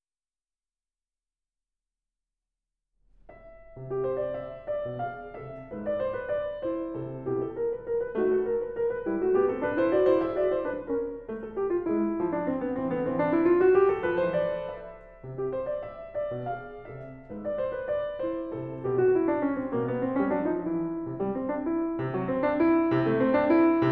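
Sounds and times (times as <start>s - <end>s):
piano waltz: 3.1s - 23.9s.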